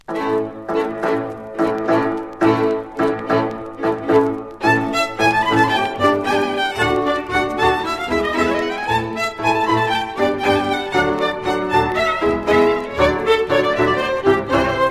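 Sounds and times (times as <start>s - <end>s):
Romanian folk dance music: 0.0s - 14.8s.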